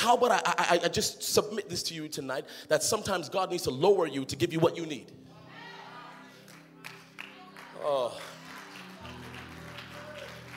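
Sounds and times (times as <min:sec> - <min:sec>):
speech: 0:00.0 - 0:05.3, 0:07.8 - 0:08.3
crowd clapping: 0:06.4 - 0:10.5.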